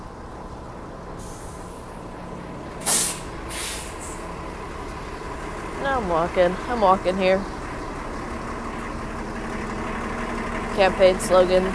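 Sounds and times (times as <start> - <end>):
bus: 0.0 - 11.7
speech: 6.0 - 7.6, 10.8 - 11.7.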